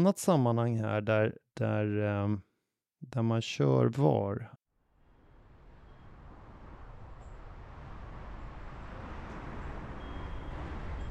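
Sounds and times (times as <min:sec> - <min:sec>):
speech: 0:00.0 - 0:04.6
street traffic in London recorded by a cyclist's GoPro camera: 0:05.1 - 0:11.0.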